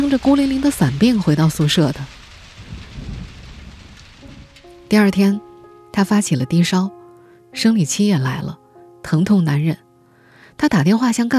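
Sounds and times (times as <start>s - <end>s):
deep rumbling roar: 0.0s - 5.6s
heavy rain downpour: 0.0s - 6.4s
speech: 0.1s - 2.2s, 4.9s - 7.0s, 7.6s - 9.8s, 10.6s - 11.3s.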